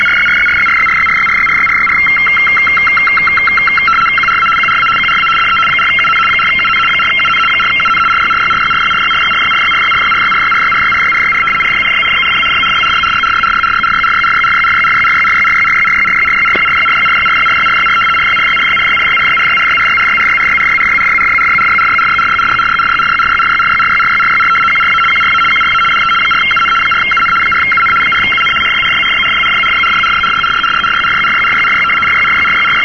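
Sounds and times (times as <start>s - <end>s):
75 baud radioteletype signal: 0.0s - 32.8s.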